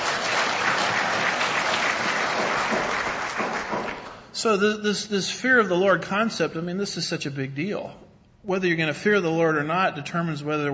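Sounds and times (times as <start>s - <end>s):
audience applause: 0.0s - 4.2s
speech: 4.4s - 10.7s.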